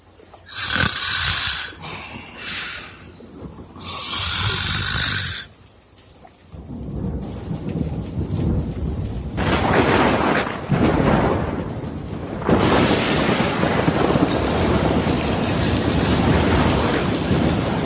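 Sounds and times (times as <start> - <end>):
sudden gale on a lake: 0.0 - 17.8
snoring while asleep: 0.4 - 3.0, 3.8 - 5.5.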